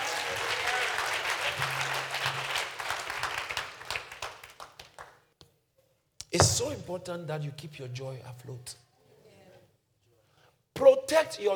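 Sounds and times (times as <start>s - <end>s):
audience applause: 0.0s - 5.1s
speech: 6.4s - 8.8s, 11.1s - 11.5s.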